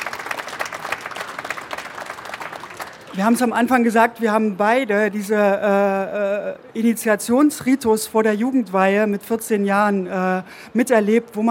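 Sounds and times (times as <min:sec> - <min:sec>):
audience applause: 0:00.0 - 0:03.3
speech: 0:03.2 - 0:11.4.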